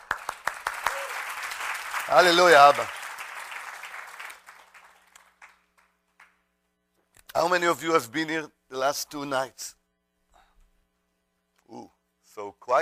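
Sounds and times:
audience applauding: 0.0 - 6.4
speech: 2.1 - 3.0, 7.4 - 9.8, 11.7 - 12.8.

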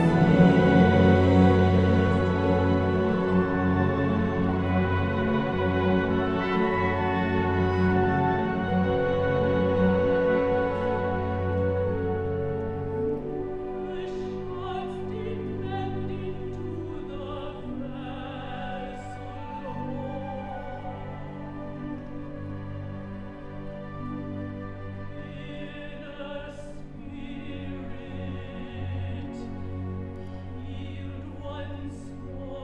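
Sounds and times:
lute playing: 0.0 - 26.0.

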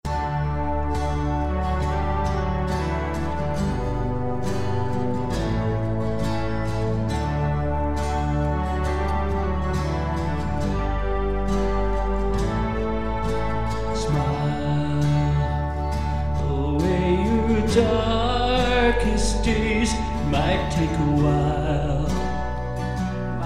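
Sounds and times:
song: 0.0 - 23.4.

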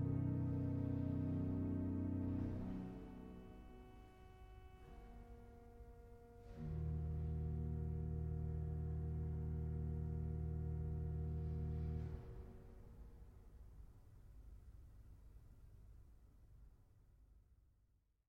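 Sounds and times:
slow expressive music: 0.0 - 13.5.

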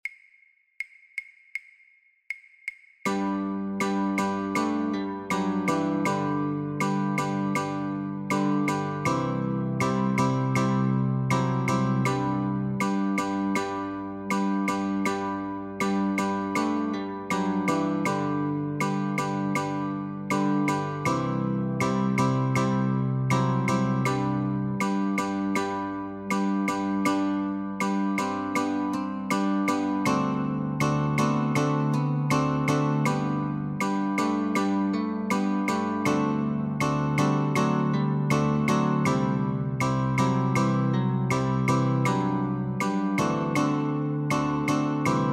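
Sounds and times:
guitar notes and chords: 3.1 - 45.3.

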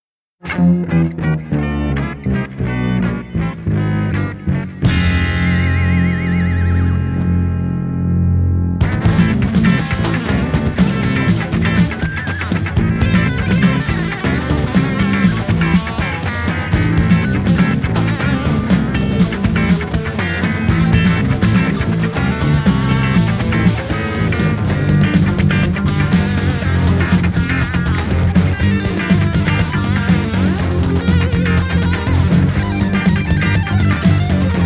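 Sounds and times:
funk music: 0.3 - 34.6.

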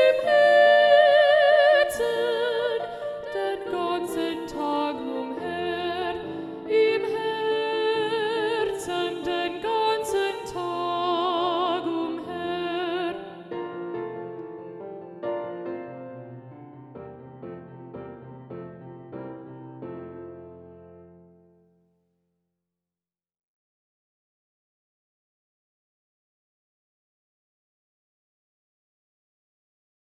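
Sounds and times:
predominant alto voice: 0.0 - 13.9.

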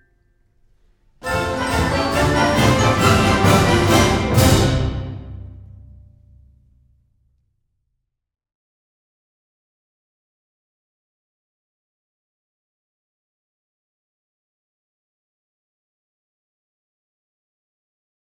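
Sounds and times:
ballet exam music for battements tendus: 1.2 - 5.6.

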